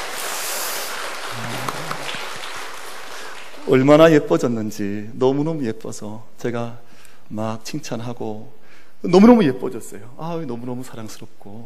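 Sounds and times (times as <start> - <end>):
audience applause: 0.0 - 3.9
speech: 3.7 - 11.6.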